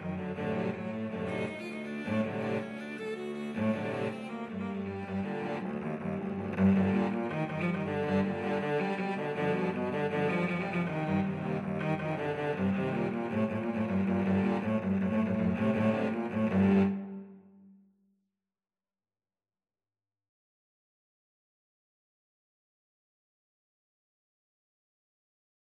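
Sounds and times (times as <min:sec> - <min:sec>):
cello ensemble: 0:00.0 - 0:17.6.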